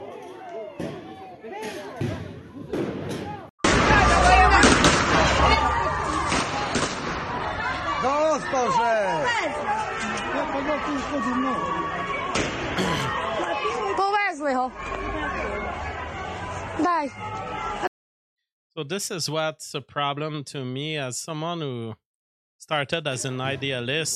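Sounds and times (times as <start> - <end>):
crowd chatter and shouting: 0.0 - 17.9
gunfire as people shoot at recruiters: 2.7 - 5.4, 6.3 - 7.3
speech: 16.8 - 17.9, 18.8 - 22.0, 22.6 - 24.1.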